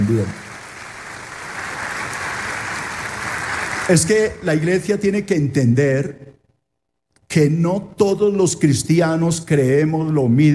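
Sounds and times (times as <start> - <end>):
speech: 0.0 - 0.4, 3.9 - 6.4, 7.3 - 10.5
audience applauding: 0.0 - 4.2.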